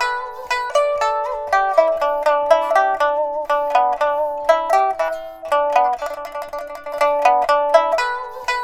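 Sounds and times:
pipa playing at 90: 0:00.0 - 0:08.6.

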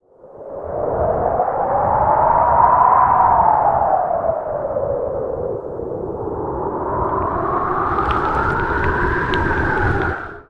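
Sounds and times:
wind: 0:00.0 - 0:10.4.

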